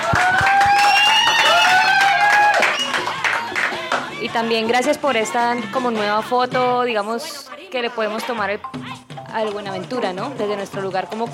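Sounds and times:
applause: 0.0 - 4.1
speech: 4.4 - 11.3.

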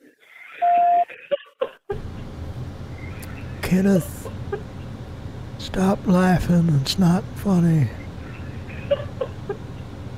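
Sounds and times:
voicemail beep: 0.6 - 1.1
speech: 3.7 - 4.2, 5.6 - 8.0.

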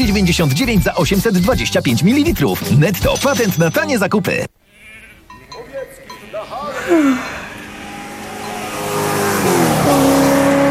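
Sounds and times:
speech: 0.0 - 4.6, 6.5 - 7.4
bleating calls: 4.6 - 8.8
car engine revving as it drives in: 7.2 - 10.7.

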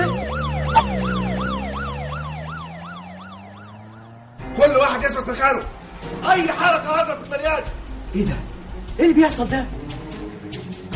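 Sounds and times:
police car siren wailing: 0.0 - 4.4
speech: 5.0 - 9.9.

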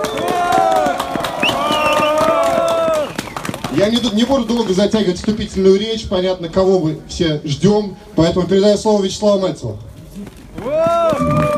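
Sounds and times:
rally crowd in Sokolniki cheering and shouting: 0.0 - 3.2
rally crowd in Sokolniki clapping before speeches: 0.0 - 5.4, 10.6 - 11.5
speech: 3.8 - 10.4.

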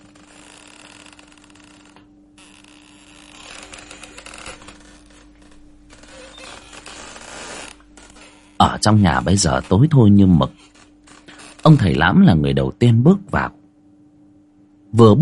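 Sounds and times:
wooden door creaking open: 0.0 - 12.1
speech: 8.6 - 10.7, 11.7 - 13.6, 14.9 - 15.1.

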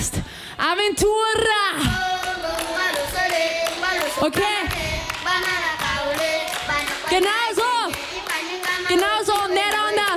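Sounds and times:
speech: 0.0 - 1.9
concert audience clapping along in a steady quick rhythm: 2.0 - 10.1.

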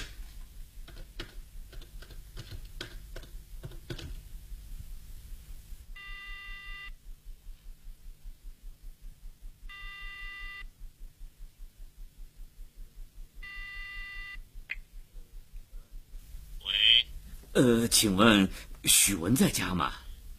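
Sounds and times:
telephone ringback tone from a phone booth: 6.0 - 6.9
speech: 17.6 - 20.1.

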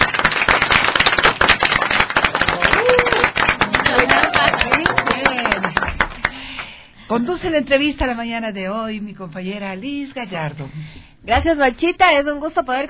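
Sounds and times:
audience applause: 0.0 - 6.6
speech: 7.2 - 12.8.

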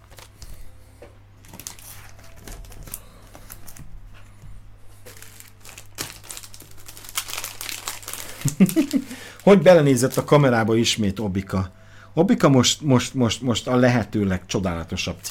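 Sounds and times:
plastic packaging crinkling while packing comic books: 0.0 - 0.7, 1.4 - 3.9, 4.9 - 10.8, 14.6 - 15.2
low steady hum: 0.0 - 15.2
speech: 8.6 - 15.2.

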